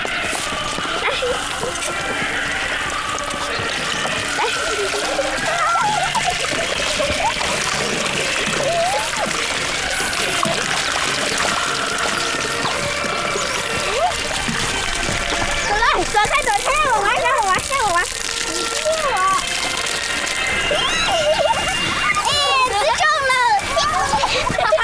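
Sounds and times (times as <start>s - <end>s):
laughter: 0.0s - 17.2s, 18.5s - 24.8s
children calling out: 0.0s - 24.8s
water splashing and trickling as children play in it: 0.0s - 24.8s.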